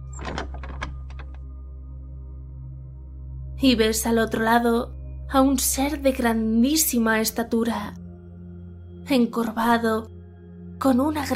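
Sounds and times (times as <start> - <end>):
door opening: 0.0 - 1.4
speech: 3.6 - 8.0, 9.1 - 10.2, 10.8 - 11.3.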